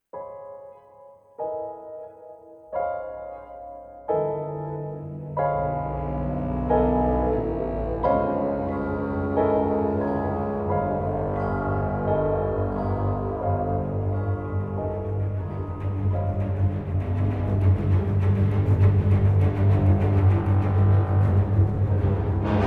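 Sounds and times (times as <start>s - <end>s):
cutscene music: 0.2s - 22.6s.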